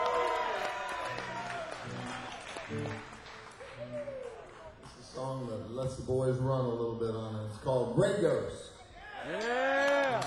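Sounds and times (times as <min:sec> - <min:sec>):
audience applause at live concert: 0:00.0 - 0:05.2, 0:09.3 - 0:10.2
speech: 0:05.8 - 0:09.8.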